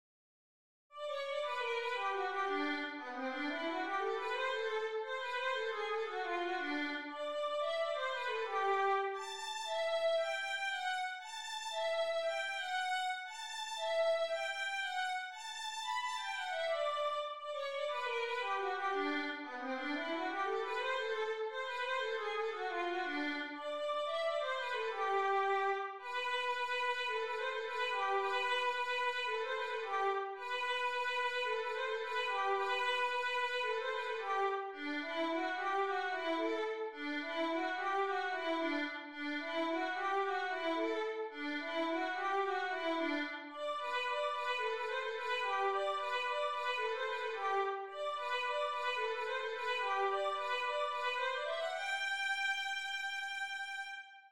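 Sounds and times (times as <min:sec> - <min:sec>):
violin playing a jarabe: 0:01.0 - 0:54.3.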